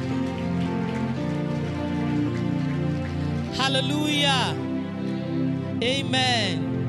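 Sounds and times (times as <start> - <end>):
audience clapping: 0.0 - 5.4
speech: 3.7 - 5.2, 5.8 - 6.7.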